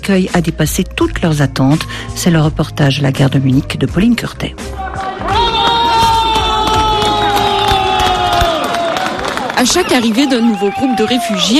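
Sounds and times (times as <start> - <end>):
speech: 0.1 - 5.0, 9.6 - 11.5
Munich residents cheering and applauding arriving refugees at Munich train station: 4.6 - 11.5.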